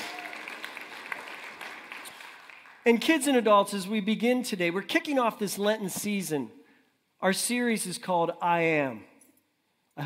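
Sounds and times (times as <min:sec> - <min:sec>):
crowd applauding: 0:00.0 - 0:02.9
speech: 0:02.8 - 0:06.6, 0:07.2 - 0:09.1.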